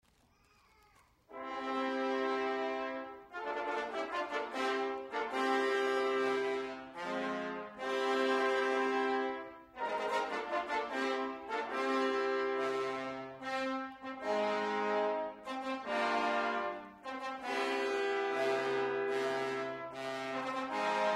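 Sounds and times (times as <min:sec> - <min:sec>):
fanfare: 0:01.3 - 0:21.1.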